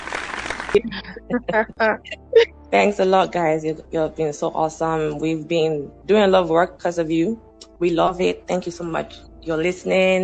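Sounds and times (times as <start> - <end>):
hands clapping: 0.0 - 1.1
speech: 0.7 - 10.2.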